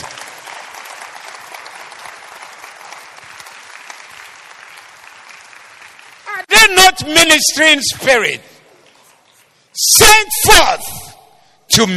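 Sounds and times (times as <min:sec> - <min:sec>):
crowd clapping: 0:00.0 - 0:06.5
speech: 0:06.7 - 0:08.5, 0:09.8 - 0:10.9, 0:11.8 - 0:11.9.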